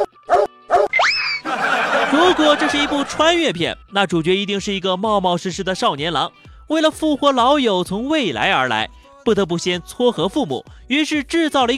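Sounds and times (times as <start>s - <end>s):
dog barking: 0.0s - 0.9s
rising cartoonish whistle: 0.3s - 1.5s
laughter: 1.4s - 3.3s
speech: 2.3s - 11.7s.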